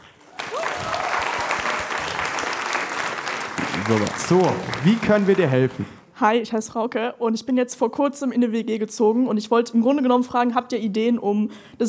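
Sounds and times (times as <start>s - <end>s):
audience applause: 0.0s - 6.0s
speech: 3.9s - 11.8s.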